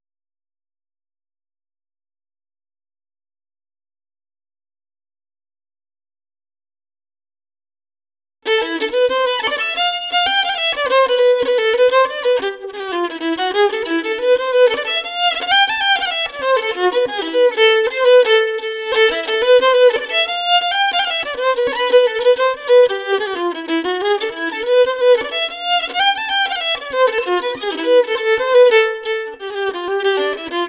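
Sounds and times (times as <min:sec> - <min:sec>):
ballet violin: 0:08.5 - 0:30.6.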